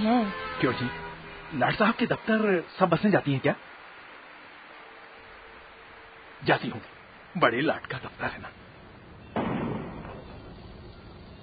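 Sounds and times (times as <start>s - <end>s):
speech: 0.0s - 3.7s, 6.4s - 8.6s
noise: 0.0s - 11.4s
gunshot in a city during riots: 9.4s - 10.5s.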